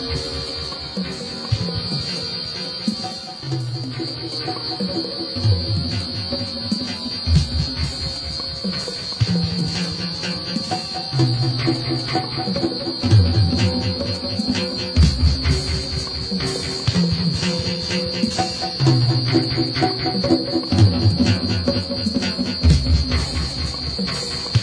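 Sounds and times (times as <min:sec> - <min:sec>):
guitar: 0:00.0 - 0:24.6
drum noise: 0:13.0 - 0:17.5, 0:20.7 - 0:24.6.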